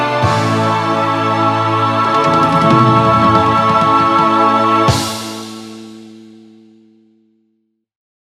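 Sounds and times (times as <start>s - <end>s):
vocals: 0.0s - 6.0s.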